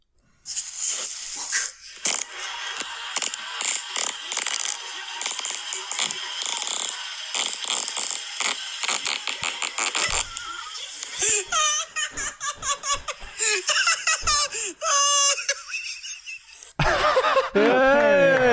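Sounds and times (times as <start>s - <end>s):
long fart recording: 1.4s - 2.3s, 3.2s - 10.4s
laughter: 2.0s - 18.5s.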